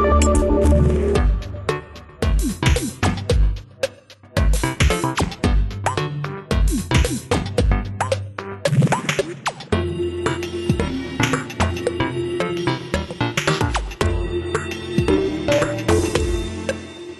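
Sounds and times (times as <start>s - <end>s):
music: 0.0s - 17.1s.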